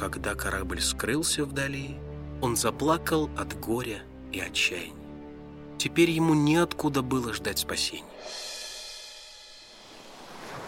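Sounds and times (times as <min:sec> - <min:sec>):
speech: 0:00.0 - 0:05.0, 0:05.8 - 0:08.5
sea waves tossing a small wooden trough: 0:09.6 - 0:10.6.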